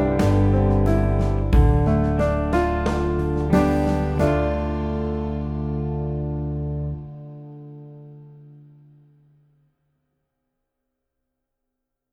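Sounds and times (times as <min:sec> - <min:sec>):
jazz backing track: 0:00.0 - 0:08.6.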